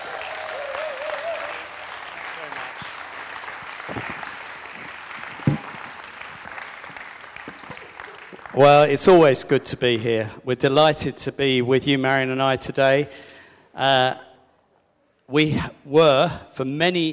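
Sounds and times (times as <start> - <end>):
audience applause welcoming a speaker: 0.0 - 9.3
sharp knock: 5.4 - 6.0
speech: 8.6 - 14.2, 15.3 - 17.1.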